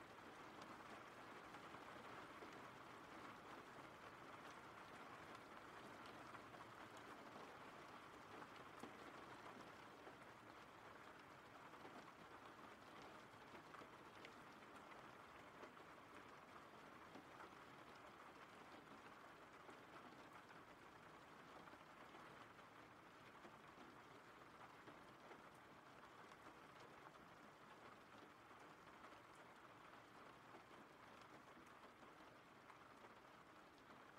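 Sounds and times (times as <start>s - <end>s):
steady rain: 0.0s - 34.1s.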